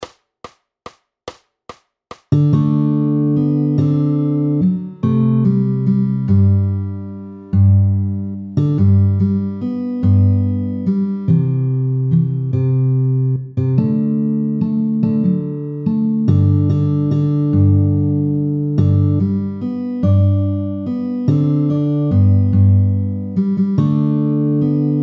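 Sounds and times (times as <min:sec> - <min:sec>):
Irish guitar music: 0:02.3 - 0:25.0.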